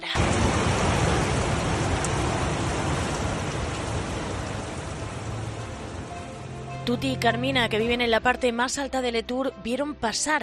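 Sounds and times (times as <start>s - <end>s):
light rain falling in Letur: 0.0s - 8.0s
speech: 6.9s - 10.4s.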